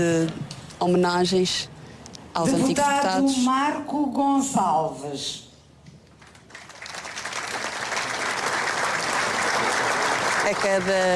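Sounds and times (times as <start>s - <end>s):
speech: 0.0s - 1.7s, 2.4s - 5.4s, 10.5s - 11.1s
audience applauding in a large hall: 6.2s - 11.1s.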